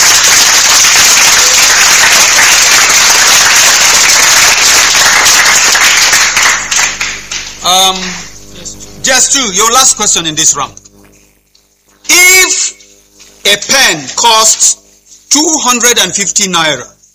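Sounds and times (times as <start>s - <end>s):
round of applause from a group: 0.0s - 8.3s
speech: 9.2s - 10.8s, 13.5s - 14.7s, 15.3s - 17.0s.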